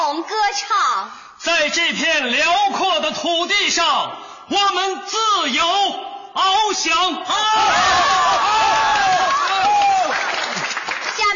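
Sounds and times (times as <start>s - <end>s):
speech: 0.2s - 9.9s, 11.2s - 11.3s
crowd cheering: 7.3s - 11.3s
crowd clapping: 7.8s - 11.3s.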